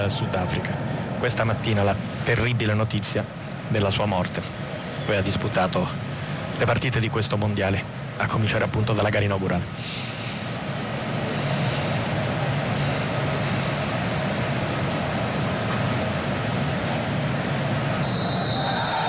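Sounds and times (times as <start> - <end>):
speech: 0.0 - 6.0, 6.6 - 10.1
stadium crowd roaring and applauding: 10.7 - 19.0
referee's whistle: 18.0 - 19.0.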